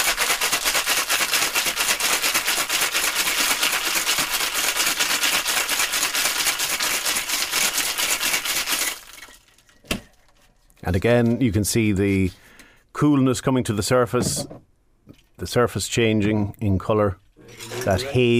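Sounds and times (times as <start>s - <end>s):
ice rattling in a cocktail shaker: 0.0s - 9.7s
speech: 10.9s - 12.4s, 13.0s - 14.7s, 15.4s - 17.2s, 17.8s - 18.3s.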